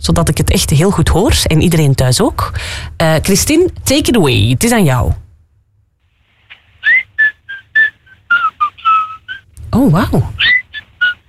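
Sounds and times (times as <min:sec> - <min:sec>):
speech: 0:00.0 - 0:05.2, 0:09.7 - 0:10.6
person whistling a pop melody: 0:06.8 - 0:09.4, 0:11.0 - 0:11.2.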